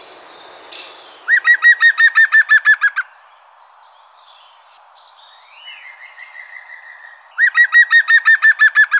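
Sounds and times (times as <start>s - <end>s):
European green woodpecker ringing laughing calls: 0.8s - 3.1s, 7.4s - 8.9s.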